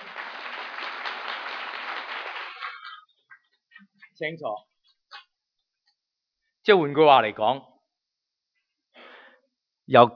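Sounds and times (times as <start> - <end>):
audience applause: 0.0 - 3.1
speech: 4.2 - 4.7, 6.6 - 7.7, 9.9 - 10.1.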